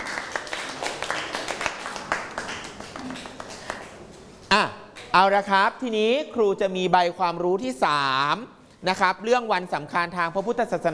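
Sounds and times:
students clapping for themselves: 0.0s - 4.1s
speech: 4.5s - 10.9s.

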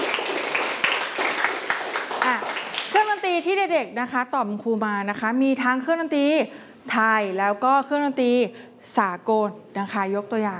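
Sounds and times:
children clapping in a classroom music lesson: 0.0s - 3.5s
speech: 3.4s - 10.5s.

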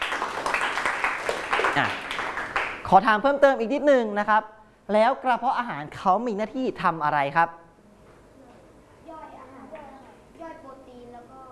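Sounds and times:
school class clapping for a classmate: 0.0s - 2.9s
speech: 1.8s - 2.0s, 2.8s - 7.6s.

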